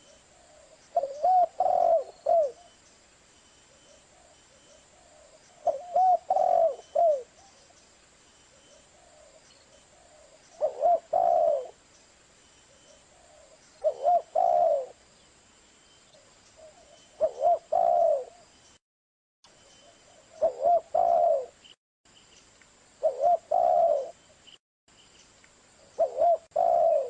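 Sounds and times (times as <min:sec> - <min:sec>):
spotted dove cooing: 0:00.0 - 0:02.7, 0:04.9 - 0:07.5, 0:09.0 - 0:11.8, 0:13.1 - 0:15.0, 0:16.6 - 0:18.4, 0:20.1 - 0:21.6, 0:23.0 - 0:24.2, 0:26.0 - 0:27.0.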